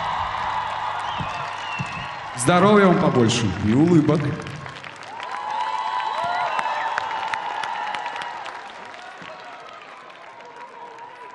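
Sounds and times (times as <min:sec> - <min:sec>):
crowd applauding: 0:00.0 - 0:11.3
high whistles: 0:00.9 - 0:02.4
speech: 0:02.4 - 0:04.5.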